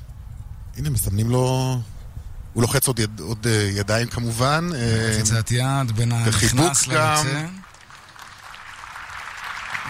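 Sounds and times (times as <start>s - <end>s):
speech: 0.8s - 2.0s, 2.6s - 7.7s
applause at a handover ceremony: 5.3s - 9.8s.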